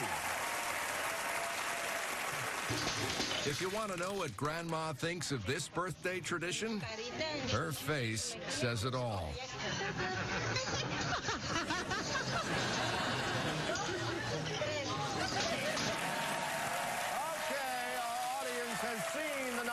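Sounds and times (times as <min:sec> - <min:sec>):
studio audience clapping: 0:00.0 - 0:04.9, 0:15.4 - 0:19.7
speech: 0:02.7 - 0:13.2
crowd chatter: 0:04.4 - 0:19.7
audience laughter: 0:09.6 - 0:14.6.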